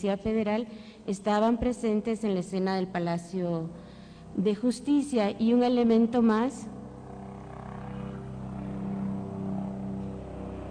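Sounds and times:
speech: 0.0s - 6.7s
helicopter flying overhead: 3.7s - 10.6s.

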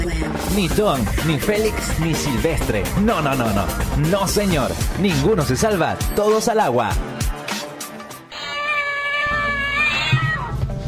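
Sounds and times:
speech: 0.5s - 7.1s
cat meowing: 8.3s - 10.6s.

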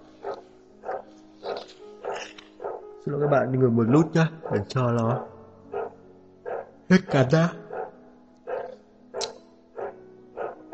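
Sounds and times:
dog barking: 0.2s - 2.8s, 4.4s - 4.7s, 5.7s - 10.7s
speech: 3.1s - 5.3s, 6.9s - 7.6s.

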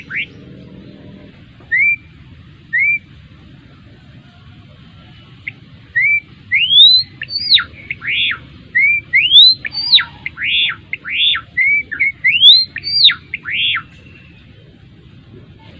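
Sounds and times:
adult male Java sparrow singing whistled notes: 0.0s - 1.0s, 1.7s - 2.1s, 2.7s - 3.1s, 5.4s - 14.5s.

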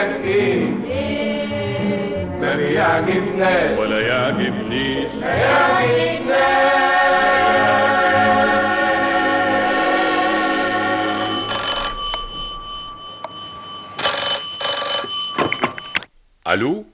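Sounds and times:
music: 0.0s - 14.0s
speech: 2.6s - 7.8s, 16.5s - 16.9s
telephone bell ringing: 10.9s - 16.1s.

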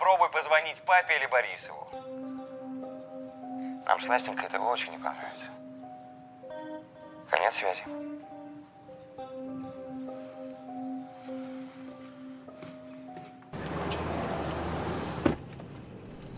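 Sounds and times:
speech: 0.2s - 2.2s, 3.9s - 5.6s, 7.3s - 8.3s
person getting into a car at the driver's seat: 10.8s - 16.3s.

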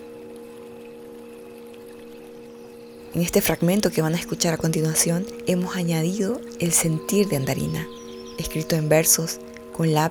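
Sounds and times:
water flowing in irrigation channels: 3.1s - 10.0s
speech: 3.2s - 10.0s.

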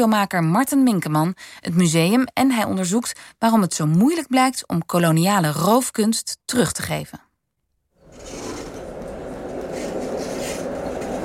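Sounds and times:
speech: 0.0s - 7.3s
tram riding on rails: 8.1s - 11.2s.

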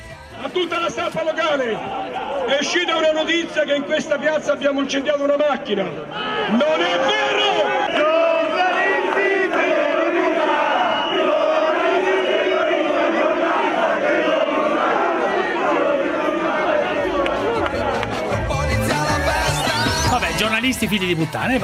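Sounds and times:
speech: 0.5s - 8.1s, 20.4s - 21.6s
crowd chanting like a stadium chorus: 6.1s - 21.1s.

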